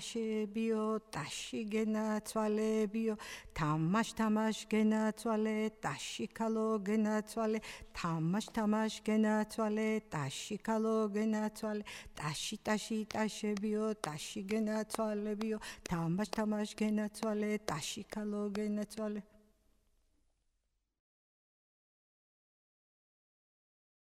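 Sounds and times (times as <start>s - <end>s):
person singing a waking song to a child in Tianeti: 0.0s - 19.2s.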